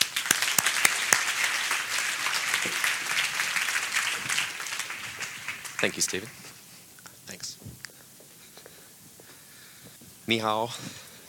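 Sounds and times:
audience applause: 0.0 - 6.7
speech: 5.8 - 6.5, 10.3 - 11.0.

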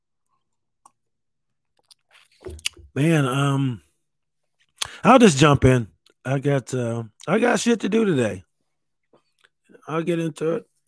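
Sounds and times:
sipping coffee from a mug: 1.9 - 3.0
speech: 2.9 - 3.8, 5.0 - 8.5, 9.9 - 10.7.

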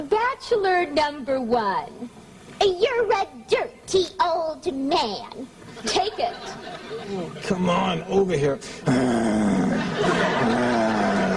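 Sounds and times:
speech: 0.0 - 10.9
laughter: 5.7 - 7.7, 8.9 - 11.3
man growling like a dog: 8.8 - 11.3.

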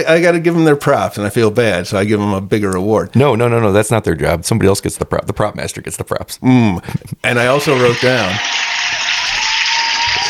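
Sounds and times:
speech: 0.0 - 8.7
audience applause: 7.8 - 10.2.

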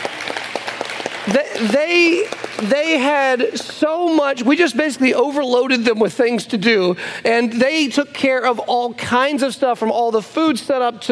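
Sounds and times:
audience scattered clapping at a gathering: 0.0 - 3.9
speech: 1.3 - 11.1.

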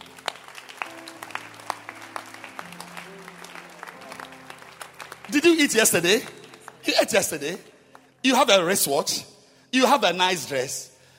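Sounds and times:
audience clapping hands: 0.0 - 8.9
speech: 5.3 - 10.9.

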